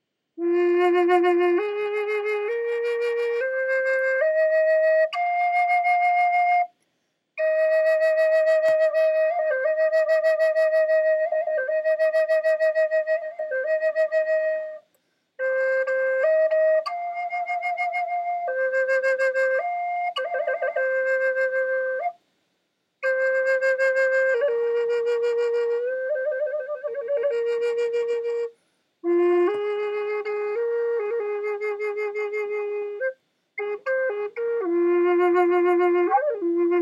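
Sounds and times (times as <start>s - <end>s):
natural flute: 0.4s - 6.8s, 7.4s - 22.3s, 23.0s - 36.8s.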